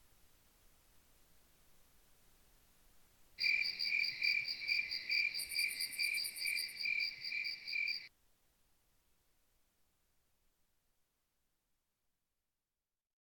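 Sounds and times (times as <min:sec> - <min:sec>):
fall night ambience: 0:00.0 - 0:08.1.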